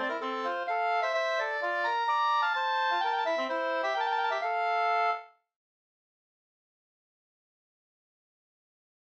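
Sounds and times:
polska tune in F major: 0:00.0 - 0:05.4.

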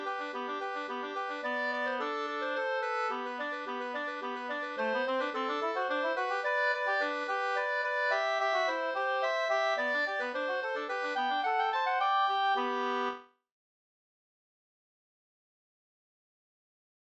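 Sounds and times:
slangpolska folk dance tune: 0:00.0 - 0:13.2.

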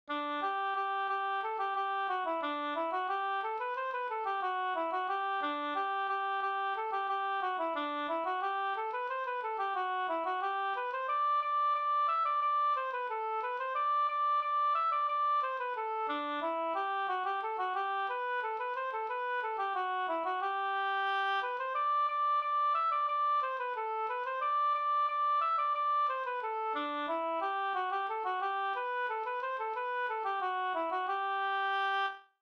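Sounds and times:
polka music: 0:00.1 - 0:32.2.

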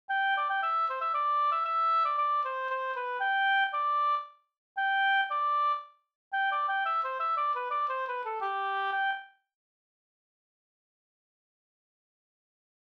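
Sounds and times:
polska folk tune from Södermanland: 0:00.1 - 0:09.3.

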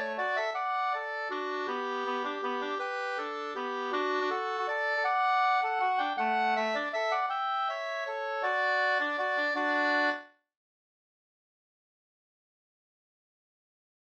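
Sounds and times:
waltz in two parts: 0:00.0 - 0:10.3.

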